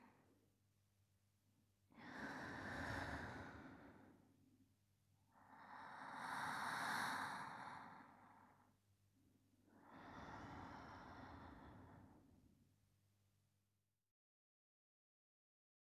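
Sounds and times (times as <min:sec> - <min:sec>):
sleeping breath: 0:02.0 - 0:04.3, 0:05.3 - 0:08.7, 0:09.7 - 0:12.3.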